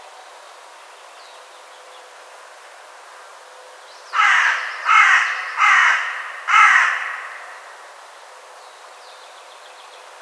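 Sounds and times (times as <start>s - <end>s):
Carrion crow cawing: 4.2s - 8.0s.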